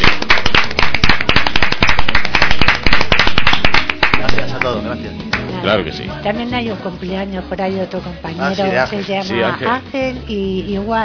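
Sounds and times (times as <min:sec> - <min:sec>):
applause: 0:00.0 - 0:05.4
speech: 0:05.6 - 0:11.0.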